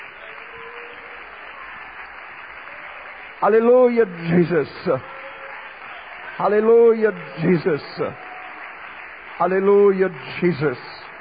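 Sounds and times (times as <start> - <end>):
crowd clapping: 0.0 - 11.1
speech: 3.4 - 5.2, 6.4 - 8.2, 9.4 - 11.0.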